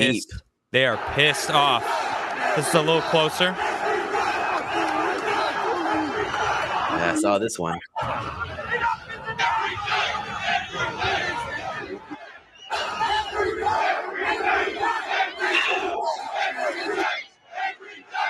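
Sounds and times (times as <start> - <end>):
laughter: 0.0 - 0.2, 0.8 - 3.6, 4.2 - 7.3
speech: 0.0 - 3.7, 7.0 - 8.5
protest crowd screaming: 0.8 - 7.2, 8.0 - 18.2.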